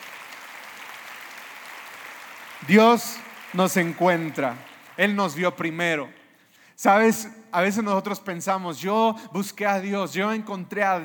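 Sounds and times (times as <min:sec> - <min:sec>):
audience applause: 0:00.0 - 0:05.7
speech: 0:02.6 - 0:06.2, 0:06.8 - 0:11.0.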